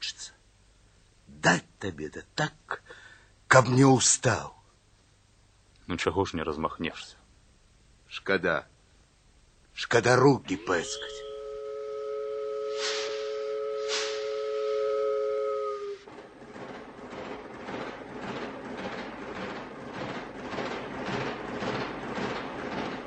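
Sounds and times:
speech: 1.4 - 2.9, 3.5 - 4.6, 5.9 - 7.2, 8.1 - 8.7, 9.8 - 11.2
steam whistle: 10.6 - 16.1
departing steam train chuffing: 10.6 - 23.0.

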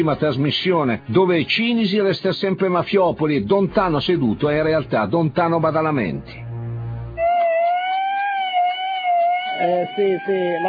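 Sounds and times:
speech: 0.0 - 6.4, 9.6 - 10.6
ambulance siren wailing in a gently wavering tone: 7.2 - 10.6.

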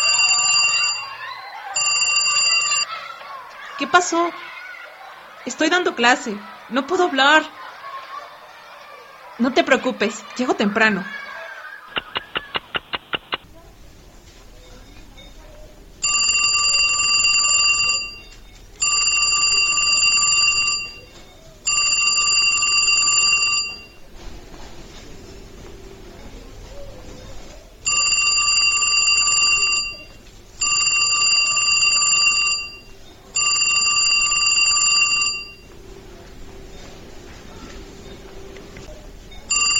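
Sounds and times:
telephone ringing in buzzing bursts: 0.0 - 4.1, 9.2 - 39.7
laughter: 0.4 - 13.8
speech: 3.8 - 4.6, 5.4 - 7.6, 9.4 - 11.2
sharp clicks: 11.9 - 13.5.

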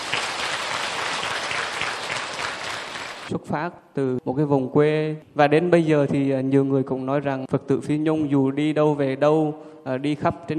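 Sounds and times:
audience applause: 0.0 - 3.3
speech: 3.3 - 10.5.

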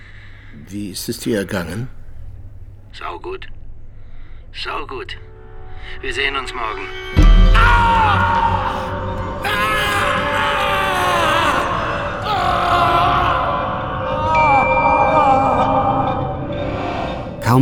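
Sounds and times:
speech: 0.7 - 2.0, 3.0 - 3.6, 4.6 - 9.7
man's deafening scream of pain, surprise and rage: 7.2 - 16.4.

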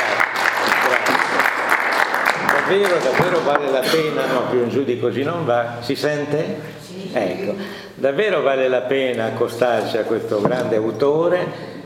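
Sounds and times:
audience applause welcoming a speaker: 0.0 - 4.1
speech: 2.7 - 11.8.

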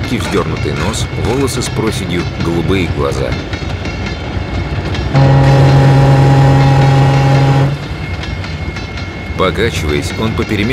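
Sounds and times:
continuous rumbling freight train noise: 0.0 - 10.7
speech: 0.1 - 3.8, 9.4 - 10.7
locomotive hauling brown freight wagons sounding its horn: 5.1 - 8.0.

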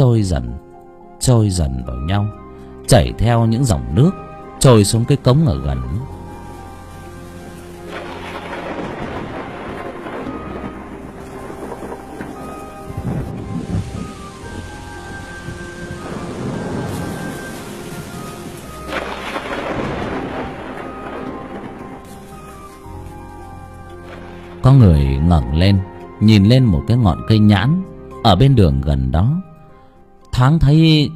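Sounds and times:
speech: 0.0 - 6.2, 24.7 - 29.5, 30.4 - 31.1
heavy rain: 4.0 - 27.0
thunder: 7.6 - 23.4.

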